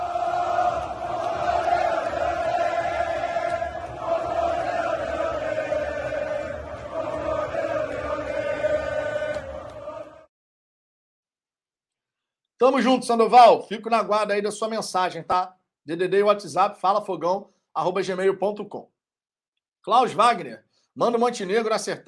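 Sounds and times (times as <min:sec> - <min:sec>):
large football crowd chanting in unison: 0:00.0 - 0:10.3
speech: 0:12.6 - 0:18.9, 0:19.8 - 0:22.0.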